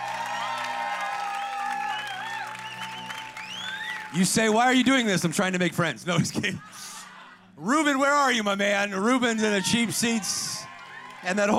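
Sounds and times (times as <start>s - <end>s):
audience cheering: 0.0s - 5.4s, 9.0s - 11.5s
audience clapping: 0.0s - 5.8s, 10.0s - 11.5s
speech: 4.1s - 7.0s, 7.6s - 10.6s, 11.2s - 11.5s
laughter: 6.1s - 7.5s.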